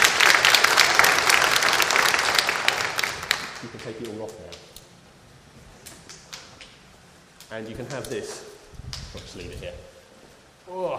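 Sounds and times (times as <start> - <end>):
crowd clapping: 0.0 - 4.7
speech: 3.9 - 4.7, 7.5 - 8.5, 9.1 - 9.9, 10.7 - 10.9.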